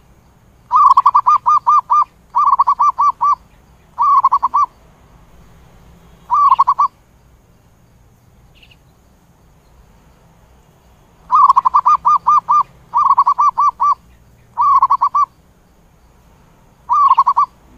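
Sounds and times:
zebra dove cooing: 0.7 - 3.4, 4.0 - 4.7, 6.3 - 7.0, 11.3 - 15.3, 16.9 - 17.7.

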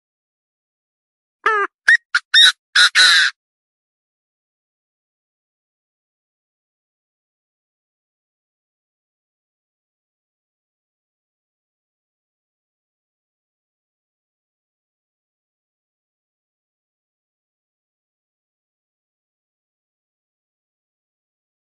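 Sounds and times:
partridge calling: 1.5 - 3.3.

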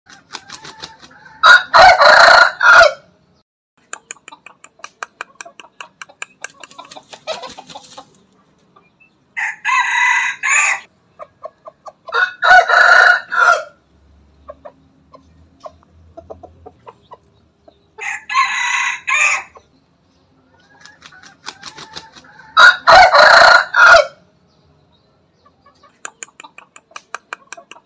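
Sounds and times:
chicken clucking: 0.1 - 2.6, 3.8 - 9.8, 10.4 - 13.5, 14.3 - 18.4, 19.1 - 23.8, 25.3 - 27.8
rooster crowing: 0.3 - 3.1, 9.4 - 10.9, 12.1 - 13.8, 18.0 - 19.6, 21.5 - 24.2.

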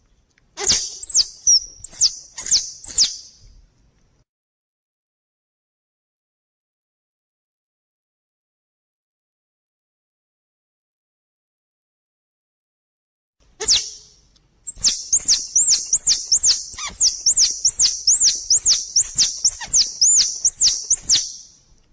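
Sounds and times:
squirrel chattering: 0.6 - 3.1, 14.7 - 21.3.

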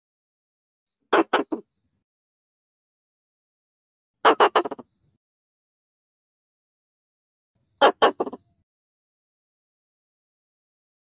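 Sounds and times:
Pallas's squirrel rasping chatter bursts: 1.1 - 1.6, 4.2 - 4.8, 7.8 - 8.4.

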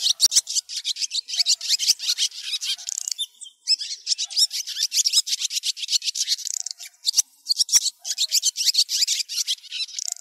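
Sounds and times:
swallows twittering: 0.0 - 10.2.

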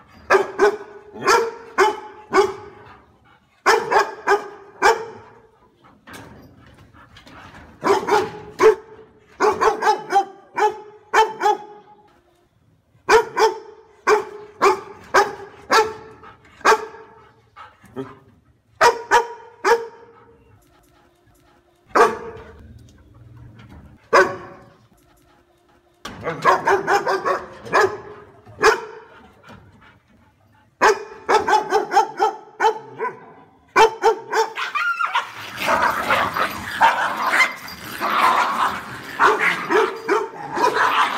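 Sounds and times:
dog barking: 0.3 - 2.8, 3.6 - 5.4, 7.8 - 11.9, 13.1 - 17.2, 18.8 - 20.1, 21.9 - 22.4, 24.1 - 24.7, 26.3 - 29.1, 30.8 - 37.6, 39.2 - 41.1.

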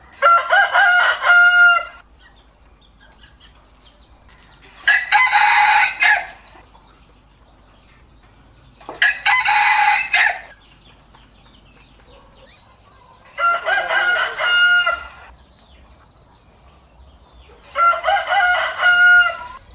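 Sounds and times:
rooster crowing: 0.0 - 2.0, 4.8 - 6.5, 9.0 - 10.6, 13.0 - 15.3, 17.6 - 19.6.

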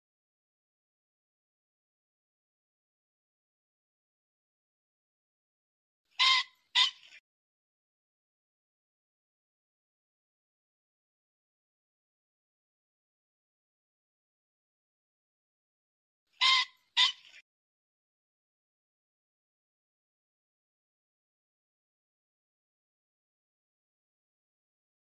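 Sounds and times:
pheasant squawking: 6.2 - 7.2, 16.4 - 17.4.

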